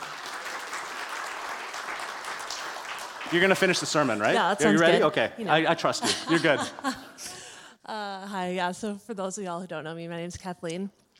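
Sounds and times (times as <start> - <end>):
audience applause: 0.0 - 4.6
speech: 3.3 - 7.3, 7.9 - 11.0
laughter: 4.6 - 7.5.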